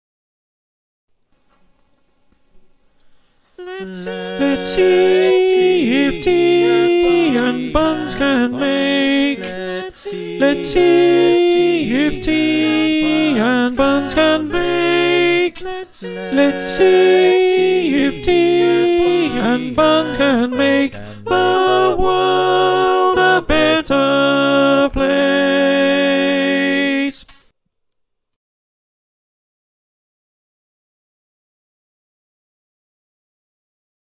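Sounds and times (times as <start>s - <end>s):
alto choir singing: 3.6s - 27.3s.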